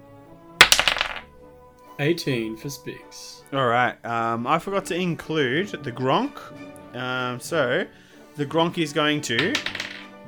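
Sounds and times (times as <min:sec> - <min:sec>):
dice clattering across a table: 0:00.6 - 0:01.3, 0:09.2 - 0:10.2
speech: 0:02.0 - 0:09.8.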